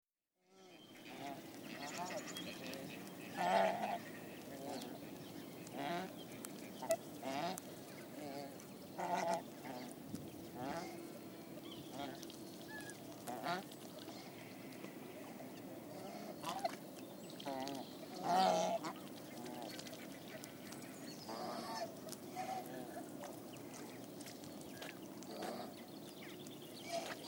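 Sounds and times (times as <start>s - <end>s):
swan goose honking: 0.5s - 16.8s, 17.4s - 25.9s, 26.8s - 27.2s.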